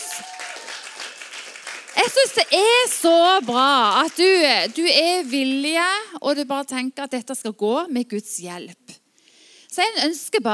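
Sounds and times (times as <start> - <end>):
audience applause: 0.0 - 5.6
speech: 2.0 - 8.8, 9.8 - 10.5.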